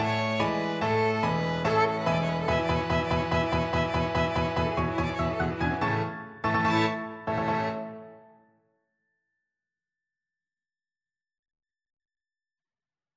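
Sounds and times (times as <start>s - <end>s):
violin: 0.0s - 8.3s.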